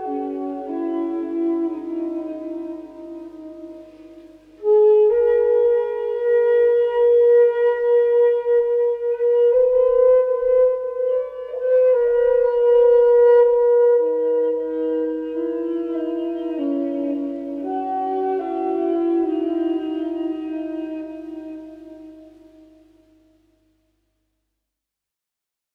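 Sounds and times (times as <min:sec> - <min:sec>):
flute music: 0:00.0 - 0:23.8.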